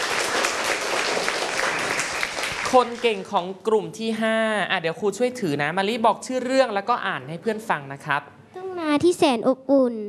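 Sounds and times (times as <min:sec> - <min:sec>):
students applauding: 0:00.0 - 0:03.3
speech: 0:02.7 - 0:08.4, 0:09.0 - 0:10.0.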